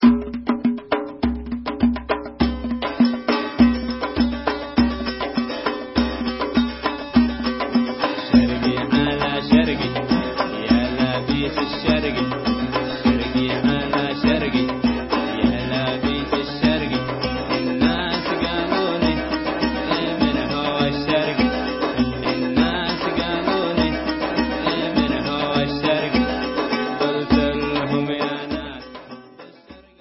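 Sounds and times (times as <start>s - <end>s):
folk dance music: 0.0s - 29.9s.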